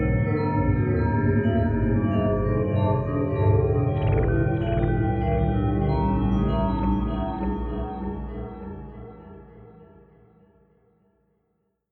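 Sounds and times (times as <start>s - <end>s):
creepy bells: 0.0s - 9.3s.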